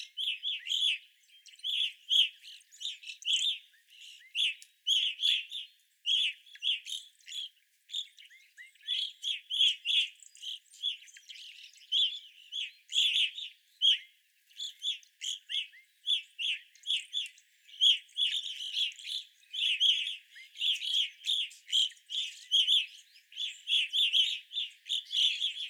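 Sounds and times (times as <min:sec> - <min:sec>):
evening grosbeak flock calling: 0:00.0 - 0:25.6.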